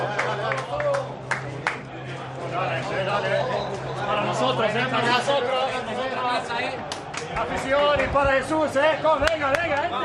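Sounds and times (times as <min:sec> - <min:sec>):
audience applause: 0:00.0 - 0:01.8, 0:06.8 - 0:08.1
speech: 0:02.6 - 0:05.6, 0:06.4 - 0:10.0.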